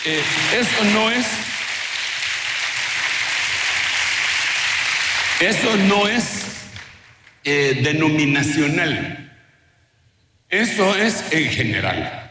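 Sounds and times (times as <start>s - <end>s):
speech: 0.0s - 1.5s, 5.4s - 6.5s, 7.4s - 9.2s, 10.5s - 12.2s
audience applause: 0.0s - 7.4s.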